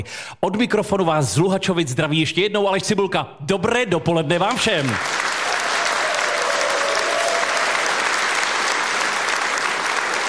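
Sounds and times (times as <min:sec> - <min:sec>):
speech: 0:00.0 - 0:05.3
sustained applause from a large audience: 0:04.6 - 0:10.2.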